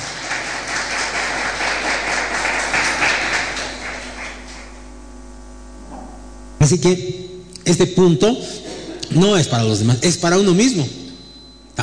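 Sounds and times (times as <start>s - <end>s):
audience applause: 0.0s - 4.8s
speech: 6.7s - 11.0s.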